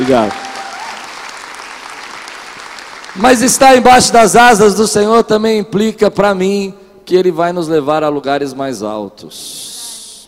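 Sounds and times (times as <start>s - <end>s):
audience applause: 0.0s - 3.7s
speech: 0.1s - 0.4s, 3.2s - 9.7s.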